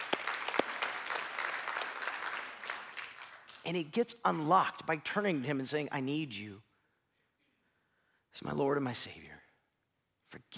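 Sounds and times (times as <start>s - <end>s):
audience applauding: 0.0s - 3.8s
speech: 3.7s - 6.7s, 8.4s - 9.4s, 10.3s - 10.5s.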